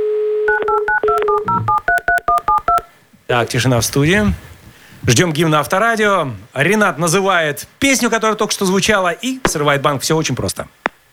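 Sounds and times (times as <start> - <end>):
telephone number dialing: 0.5 - 2.9
speech: 3.3 - 10.8.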